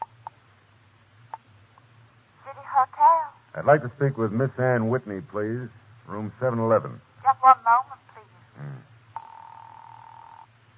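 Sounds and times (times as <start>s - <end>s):
low steady hum: 0.0s - 10.7s
speech: 2.8s - 7.1s
telephone dialing beeps: 9.2s - 10.4s.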